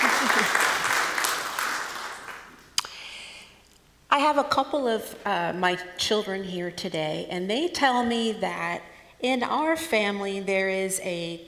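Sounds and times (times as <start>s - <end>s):
audience applause: 0.0s - 2.5s
speech: 4.3s - 11.4s.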